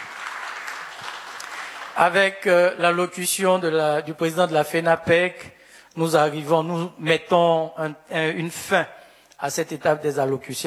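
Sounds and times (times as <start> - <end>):
applause: 0.0 - 2.5
speech: 2.0 - 10.6.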